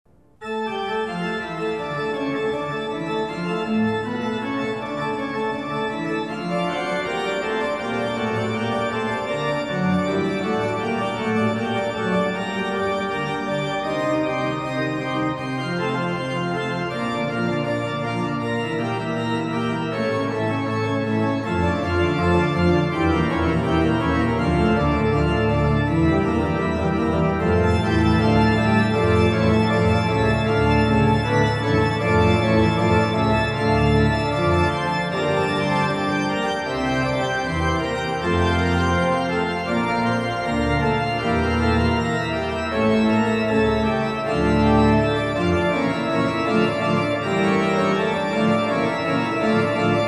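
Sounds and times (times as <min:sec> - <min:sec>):
fugue in D minor: 0:00.3 - 0:50.0.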